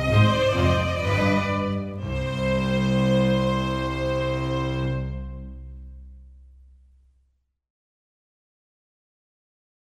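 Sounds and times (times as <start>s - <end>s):
canonic fugue: 0.0s - 7.2s.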